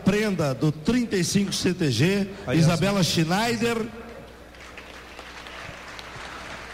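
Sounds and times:
speech: 0:00.1 - 0:04.0
applause: 0:04.5 - 0:06.7.

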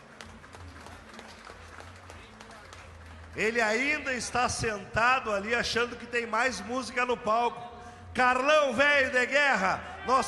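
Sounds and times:
round of applause: 0:00.0 - 0:04.4
speech: 0:03.4 - 0:07.6, 0:08.2 - 0:10.2.

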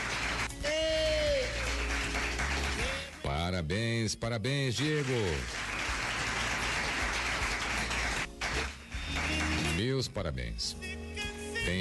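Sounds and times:
round of applause: 0:00.0 - 0:03.5, 0:04.7 - 0:09.9
speech: 0:03.6 - 0:05.8, 0:09.8 - 0:10.9.

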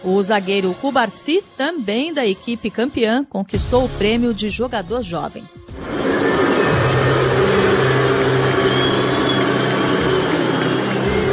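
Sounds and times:
speech: 0:00.0 - 0:06.0
stadium crowd booing: 0:05.8 - 0:11.3.

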